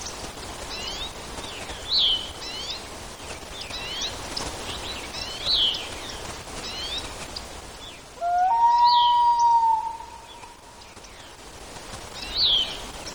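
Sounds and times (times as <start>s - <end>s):
common loon with punctuated calls: 8.2s - 10.7s.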